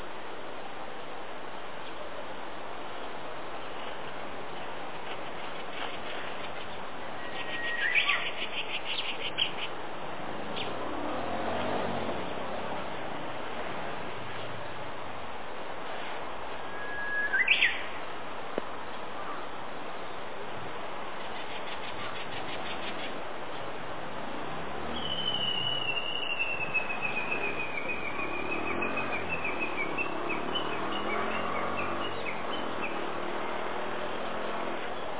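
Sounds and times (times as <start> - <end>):
hiss: 0.0 - 35.1
Japanese bush warbler song: 7.2 - 9.7, 16.7 - 17.9, 25.0 - 33.0.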